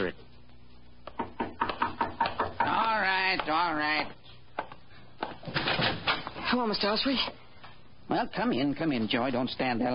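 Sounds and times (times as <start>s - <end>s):
speech: 0.0s - 0.3s, 3.4s - 4.2s, 6.5s - 7.4s, 8.1s - 9.9s
knock at a door: 1.0s - 3.7s.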